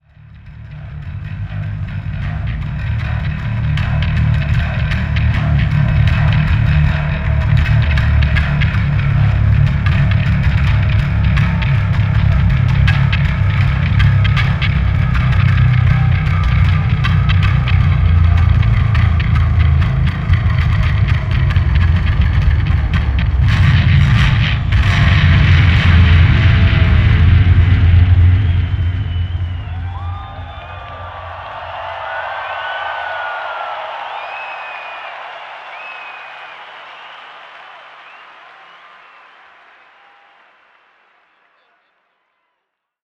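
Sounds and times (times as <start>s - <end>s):
bass solo: 0.0s - 32.6s.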